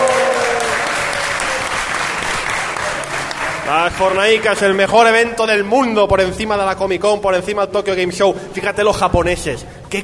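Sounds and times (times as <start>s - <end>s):
crowd applauding: 0.0s - 5.3s
speech: 3.8s - 10.0s.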